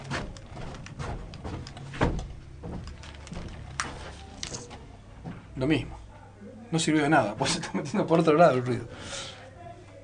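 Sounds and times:
door being closed: 0:00.0 - 0:04.8
speech: 0:05.6 - 0:06.0, 0:06.7 - 0:09.3.

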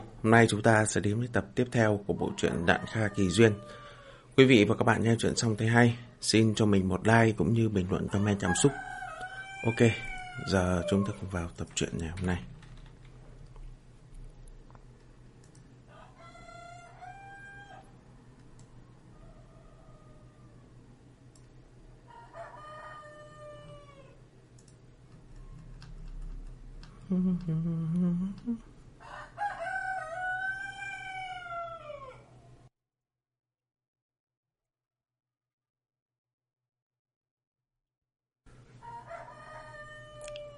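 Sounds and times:
speech: 0:00.2 - 0:03.8, 0:04.4 - 0:08.9, 0:09.6 - 0:12.5, 0:27.1 - 0:28.7
rooster crowing before dawn: 0:02.1 - 0:04.2, 0:08.0 - 0:11.3, 0:15.9 - 0:20.8, 0:22.1 - 0:24.2, 0:29.0 - 0:32.6, 0:38.8 - 0:40.5.

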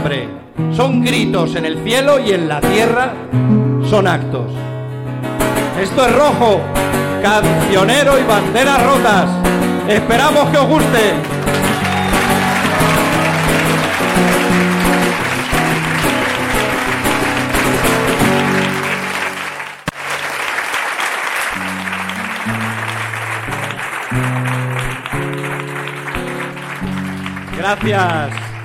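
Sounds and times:
speech: 0:00.0 - 0:11.6, 0:27.7 - 0:28.5
audience applause at a staged performance of songs: 0:10.8 - 0:28.6.

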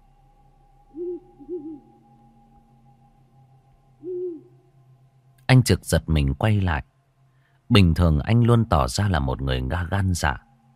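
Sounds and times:
faint steady hum: 0:00.0 - 0:10.7
barn owl hooting at night: 0:00.9 - 0:02.0, 0:04.0 - 0:04.7
speech: 0:05.6 - 0:06.9, 0:07.7 - 0:10.4.

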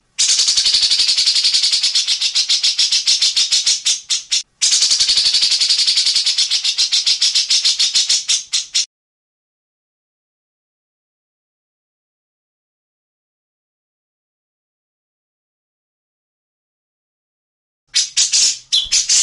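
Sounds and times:
grey-cheeked bulbul harsh rattling song: 0:00.2 - 0:08.9, 0:17.9 - 0:19.2.

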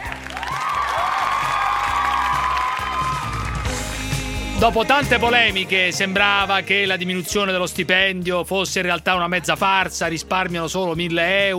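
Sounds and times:
applause sound effect: 0:00.0 - 0:04.0
speech: 0:04.6 - 0:11.5.

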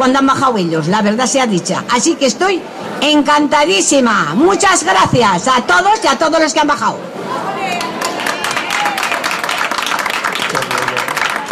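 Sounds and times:
speech: 0:00.0 - 0:07.9
town square crowd applauding: 0:07.4 - 0:11.5.

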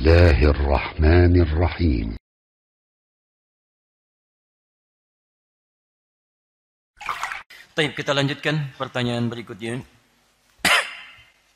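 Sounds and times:
speech: 0:00.0 - 0:02.2, 0:07.8 - 0:10.0
cough: 0:10.6 - 0:11.4.

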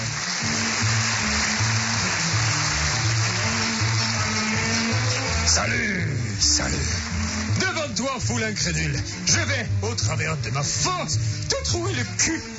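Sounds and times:
audience applause: 0:00.0 - 0:05.7, 0:06.4 - 0:08.2
speech: 0:06.6 - 0:07.0, 0:08.2 - 0:12.5.

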